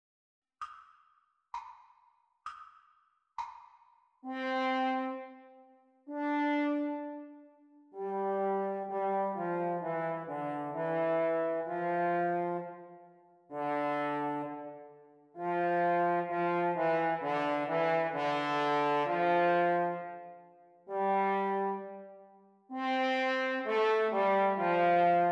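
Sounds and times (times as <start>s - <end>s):
French horn duet playalong practice: 4.3s - 5.4s, 6.1s - 7.4s, 8.0s - 25.3s.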